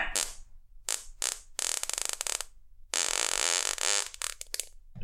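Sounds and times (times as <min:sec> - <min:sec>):
person blowing a long raspberry imitating a fart: 0:00.1 - 0:04.5.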